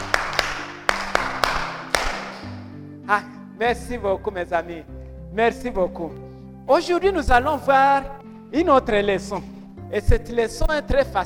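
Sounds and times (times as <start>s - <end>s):
group applauding: 0.0s - 2.6s
speech: 3.1s - 11.2s.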